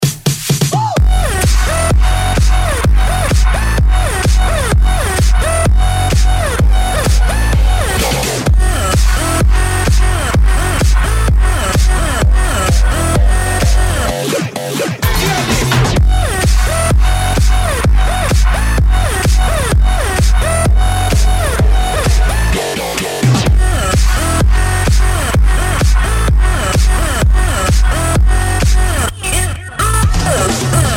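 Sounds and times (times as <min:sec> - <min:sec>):
dutch house music: 0:00.0 - 0:30.9.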